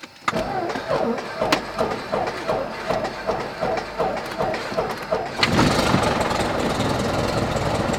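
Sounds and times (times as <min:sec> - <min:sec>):
Cessna 172 light aircraft engine starting: 0:00.0 - 0:07.9.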